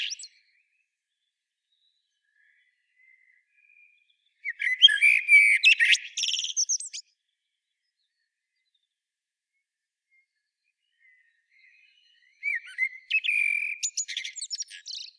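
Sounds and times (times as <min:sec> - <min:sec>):
Common blackbird Turdus merula singing: 0:00.0 - 0:00.7, 0:01.7 - 0:07.1, 0:10.8 - 0:15.1.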